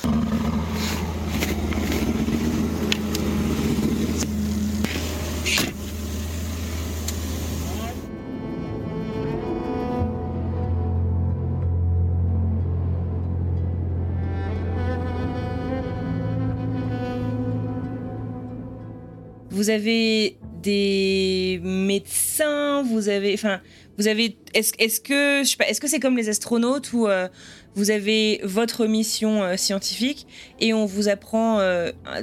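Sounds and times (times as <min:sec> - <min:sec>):
small Piste and Bully Scout vehicle engine drone at the South Pole: 0:00.0 - 0:19.2
hiss: 0:04.8 - 0:08.0
speech: 0:19.6 - 0:32.2.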